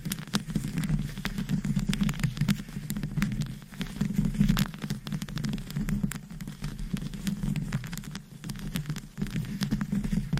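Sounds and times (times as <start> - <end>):
long nails scratching a microphone with rhinestones: 0.0 - 10.3
long nails sharp taps and clicks on rhinestones: 0.0 - 10.3.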